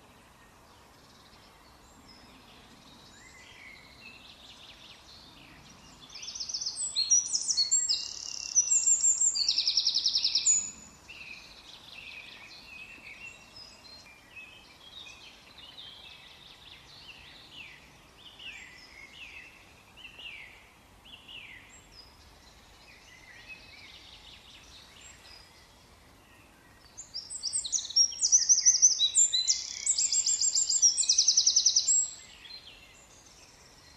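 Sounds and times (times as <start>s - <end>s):
Eurasian wren song: 0.1s - 33.9s.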